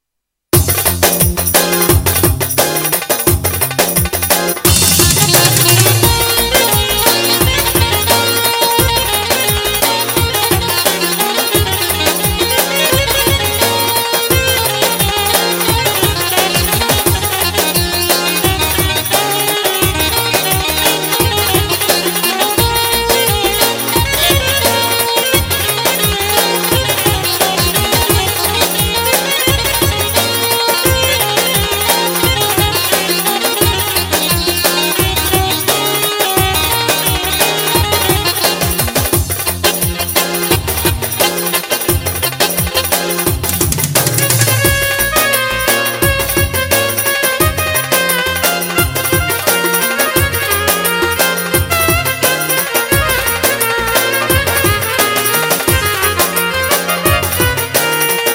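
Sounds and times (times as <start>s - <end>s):
ciftetelli rhythm on Roland GW8: 0.5s - 58.3s.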